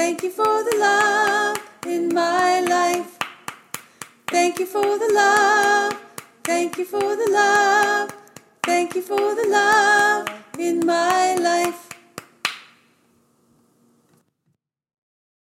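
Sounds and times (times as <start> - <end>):
soprano singing: 0.0 - 3.2, 4.3 - 12.0.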